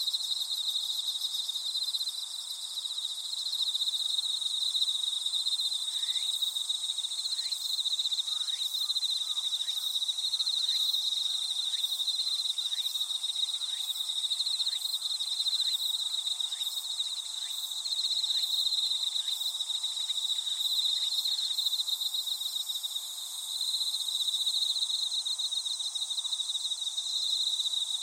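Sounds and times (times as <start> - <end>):
insect chorus trilling: 0.0 - 28.0.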